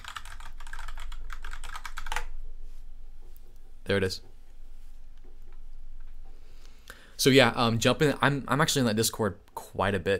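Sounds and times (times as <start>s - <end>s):
computer keyboard clicking typing a URL: 0.0s - 2.3s
speech: 3.9s - 4.3s, 7.2s - 10.1s.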